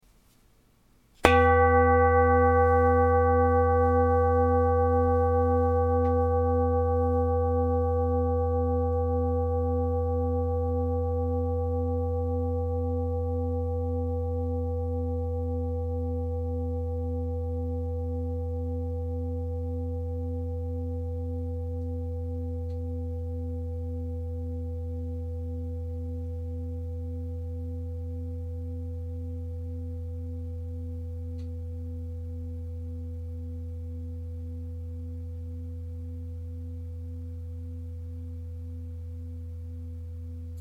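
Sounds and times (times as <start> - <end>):
singing bowl: 1.2 - 40.5.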